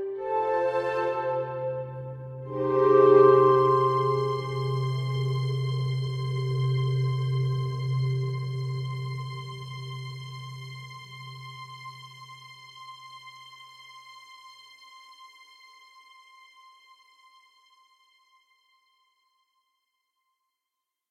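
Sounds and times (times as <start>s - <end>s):
dawn music: 0.0s - 13.2s.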